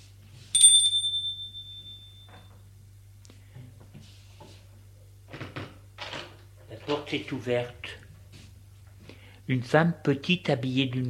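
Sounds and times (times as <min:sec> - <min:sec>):
doorbell ringing: 0:00.6 - 0:02.6
speech: 0:07.1 - 0:08.0, 0:09.5 - 0:11.0.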